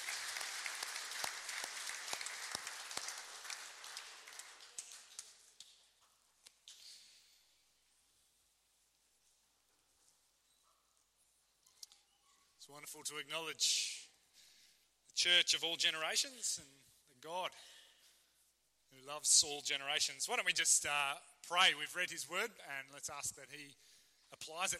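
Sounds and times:
audience applause: 0:00.0 - 0:05.5
speech: 0:12.7 - 0:14.0, 0:15.2 - 0:17.8, 0:19.0 - 0:24.7.

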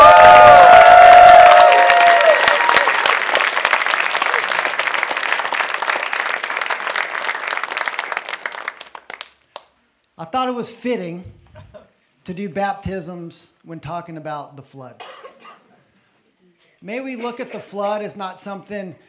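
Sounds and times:
crowd whooping and cheering: 0:00.0 - 0:04.9
audience applause: 0:00.0 - 0:09.4
speech: 0:10.6 - 0:11.4, 0:12.2 - 0:15.2, 0:16.8 - 0:19.0.

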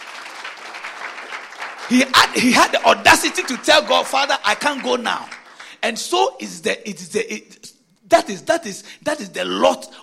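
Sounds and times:
audience clapping hands: 0:00.0 - 0:05.8
speech: 0:01.9 - 0:10.0.

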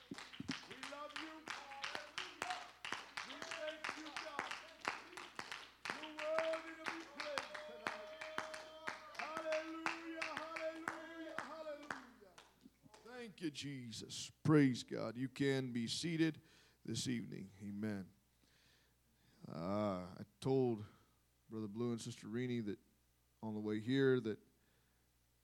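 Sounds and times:
audience hand clap of praise: 0:00.0 - 0:13.2
speech: 0:13.4 - 0:18.2, 0:20.4 - 0:24.4.

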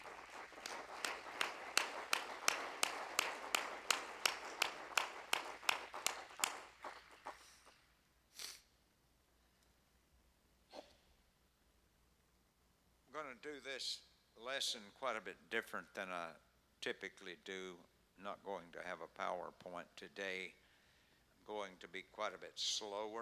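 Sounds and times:
audience clapping hands in praise: 0:00.0 - 0:08.0
speech: 0:13.3 - 0:20.6, 0:21.5 - 0:23.1.

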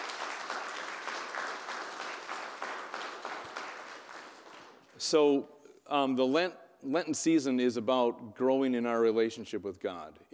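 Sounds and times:
audience applause: 0:00.0 - 0:04.8
speech: 0:05.0 - 0:10.3.

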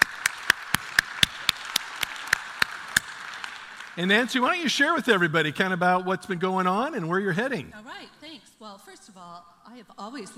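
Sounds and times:
people clapping to welcome a missionary at a church gathering: 0:00.0 - 0:05.8
speech: 0:04.0 - 0:10.3.

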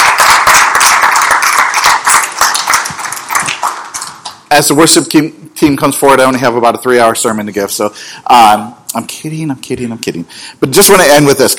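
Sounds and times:
audience clapping: 0:00.0 - 0:04.5
speech: 0:04.5 - 0:11.5.

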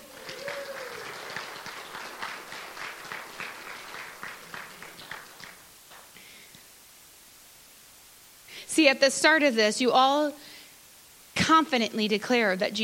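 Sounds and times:
hand clapping: 0:00.0 - 0:06.2
speech: 0:08.8 - 0:10.4, 0:11.5 - 0:12.8.

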